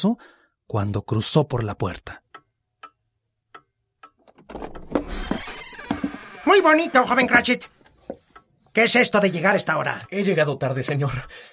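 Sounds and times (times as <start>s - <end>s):
speech: 0.0s - 2.2s, 6.4s - 7.8s, 8.8s - 11.5s
clock striking nine: 6.6s - 7.7s.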